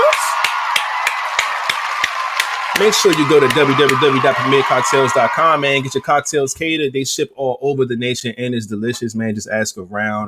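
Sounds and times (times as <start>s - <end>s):
audience applause: 0.0s - 6.2s
speech: 2.8s - 10.2s.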